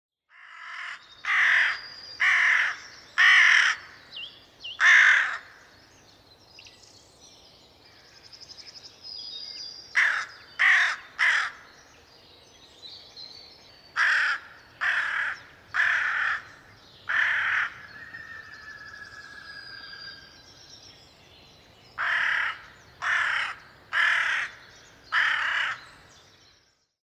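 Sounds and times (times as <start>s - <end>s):
carrion crow: 0.3s - 4.0s, 4.8s - 5.6s, 9.9s - 11.7s, 14.0s - 20.2s, 22.0s - 25.9s.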